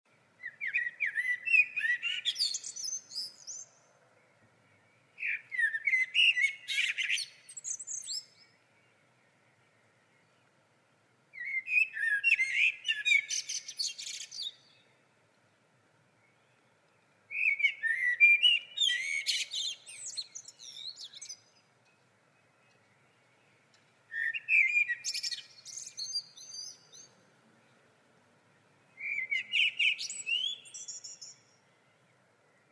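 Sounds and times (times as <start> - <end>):
common blackbird song: 0.1 - 32.7
faint steady hiss: 0.1 - 32.7.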